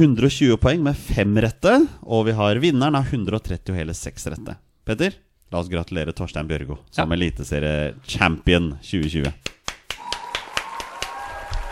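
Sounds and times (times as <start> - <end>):
speech: 0.0 - 9.6
hand claps: 9.0 - 11.7.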